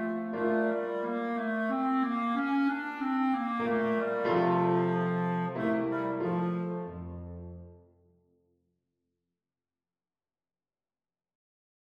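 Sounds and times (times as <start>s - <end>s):
flute playing: 0.0s - 7.7s.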